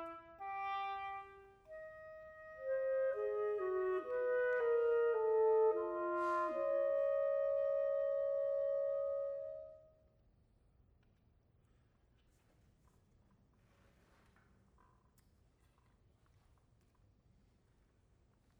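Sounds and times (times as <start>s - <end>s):
oboe and clarinet duo moderato: 0.0s - 9.8s.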